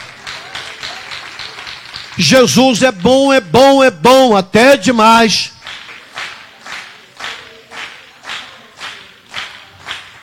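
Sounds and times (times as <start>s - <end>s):
audience applause: 0.0s - 3.1s, 5.6s - 10.2s
speech: 2.2s - 5.5s.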